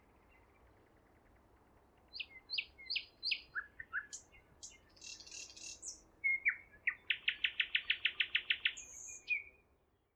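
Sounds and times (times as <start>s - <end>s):
nightingale singing: 2.1s - 9.6s.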